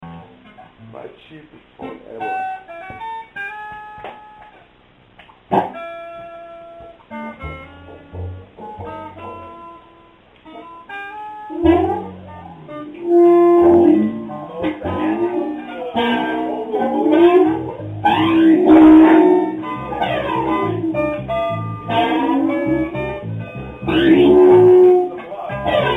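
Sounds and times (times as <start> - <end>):
bass: 0.0 - 25.9
blues music: 0.0 - 25.9.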